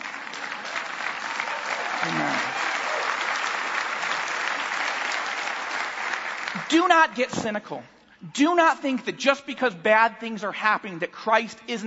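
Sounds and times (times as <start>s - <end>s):
audience applause: 0.0s - 6.7s
speech: 2.0s - 2.6s, 6.7s - 11.8s.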